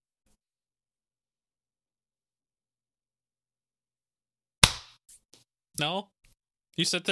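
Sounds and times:
sharp hand clap for sync: 0:04.6 - 0:05.0
speech: 0:05.8 - 0:06.2, 0:06.8 - 0:07.0.

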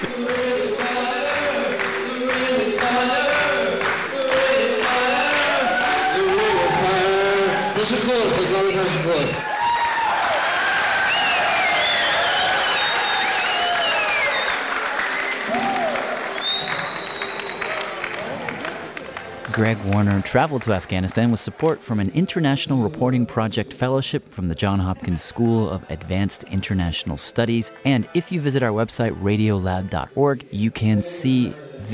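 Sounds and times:
concert crowd cheering wildly: 0:00.0 - 0:20.8
speech: 0:19.6 - 0:31.9.

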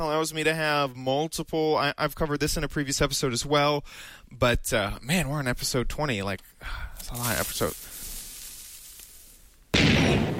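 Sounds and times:
speech: 0:00.0 - 0:07.9
creeper explosion in a video game: 0:09.7 - 0:10.3.

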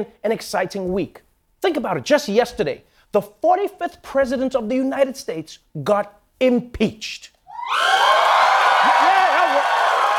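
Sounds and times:
speech: 0:00.0 - 0:08.1
audience cheering and whooping: 0:07.5 - 0:10.1.

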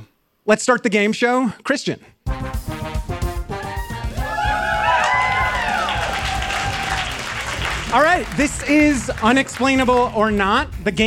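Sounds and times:
speech: 0:00.5 - 0:02.5, 0:07.9 - 0:11.0
live audience cheering and applauding: 0:03.5 - 0:10.4.

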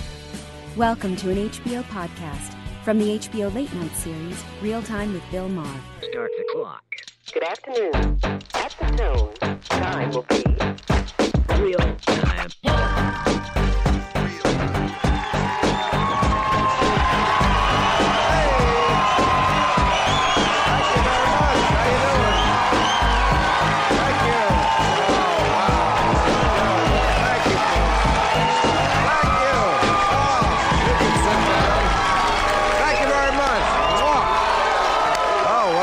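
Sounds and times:
speech: 0:00.8 - 0:10.9, 0:11.6 - 0:13.4
scattered clapping: 0:07.4 - 0:12.3, 0:14.5 - 0:35.8
large studio audience cheering and whooping: 0:14.5 - 0:35.8
shouted voices: 0:15.8 - 0:35.8.

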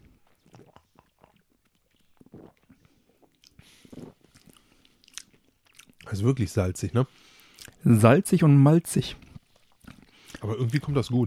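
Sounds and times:
person chewing a salty, malty delicatessen food: 0:00.0 - 0:06.1, 0:07.4 - 0:07.8, 0:09.2 - 0:11.2
speech: 0:06.1 - 0:09.2, 0:10.5 - 0:11.2.

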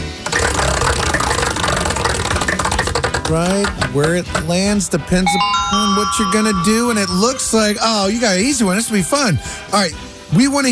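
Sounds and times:
prize wheel clicking as it spins: 0:00.2 - 0:04.6, 0:05.2 - 0:07.6
speech: 0:03.3 - 0:10.7.

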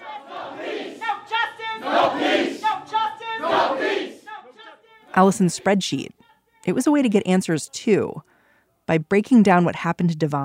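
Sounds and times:
protest crowd chanting: 0:00.0 - 0:06.5
speech: 0:05.2 - 0:08.3, 0:08.9 - 0:10.4.

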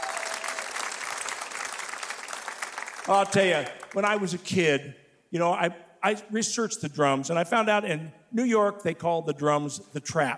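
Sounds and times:
round of applause: 0:00.0 - 0:04.3
speech: 0:03.1 - 0:10.3.

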